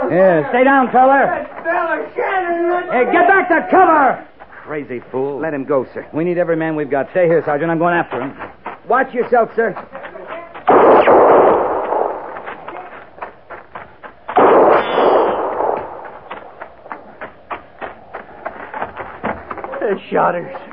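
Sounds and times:
speech: 0.1 - 1.8, 2.4 - 10.0, 19.9 - 20.7
heavy booming gunshots: 10.7 - 12.7, 14.3 - 16.6.

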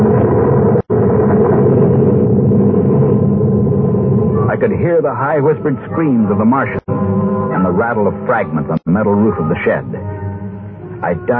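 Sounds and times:
heavy explosion rumble: 0.0 - 7.3
speech: 4.6 - 7.0, 7.6 - 10.0, 11.0 - 11.3.

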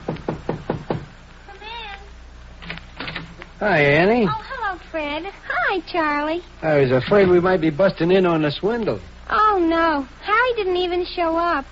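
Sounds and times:
knocking on an apartment door: 0.0 - 1.2
speech: 3.6 - 11.7.

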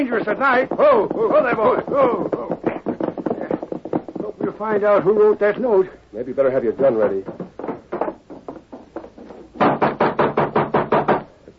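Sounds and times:
speech: 0.0 - 2.6, 4.5 - 7.4
knocking on a wooden door: 0.6 - 4.6, 7.1 - 11.2.

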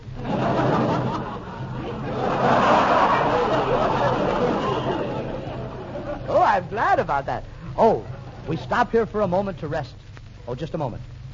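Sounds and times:
people snickering and chuckling: 0.1 - 7.0
crowd chatter in a village: 0.2 - 8.7
speech: 6.6 - 11.1.

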